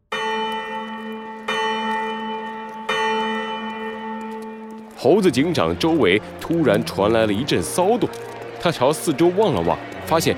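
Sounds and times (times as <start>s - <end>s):
loud bell ringing: 0.1s - 5.1s
speech: 5.0s - 10.3s.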